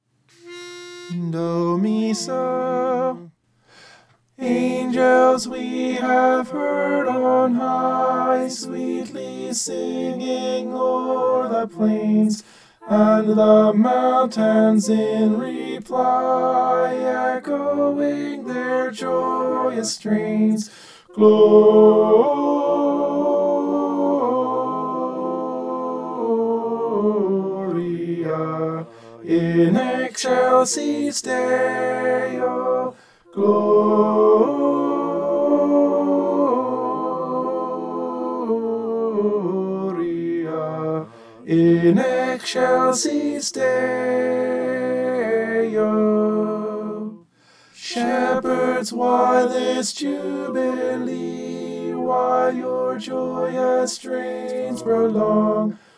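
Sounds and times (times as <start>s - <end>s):
tenor singing: 0.3s - 3.4s, 4.4s - 47.2s, 47.8s - 55.9s.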